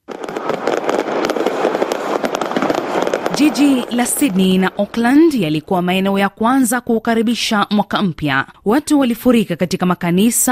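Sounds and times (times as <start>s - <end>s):
fireworks welcoming the new year: 0.0s - 7.1s
speech: 3.4s - 10.4s.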